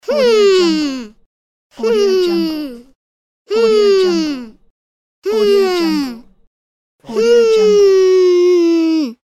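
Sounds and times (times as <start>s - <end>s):
little boy humming thoughtfully: 0.0s - 1.2s, 1.8s - 2.9s, 3.5s - 4.6s, 5.3s - 6.3s, 7.1s - 9.2s.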